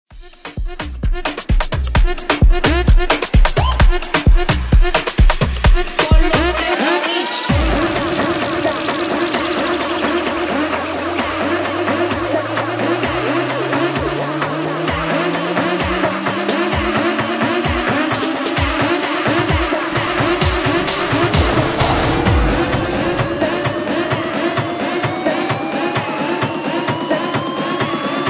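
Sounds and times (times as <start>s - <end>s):
afro bootleg remix music: 0.2s - 28.2s.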